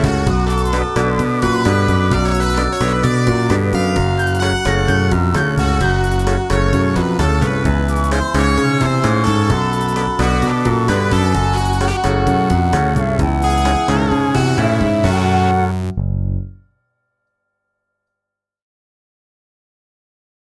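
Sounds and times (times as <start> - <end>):
Arabian blues music: 0.0 - 16.1.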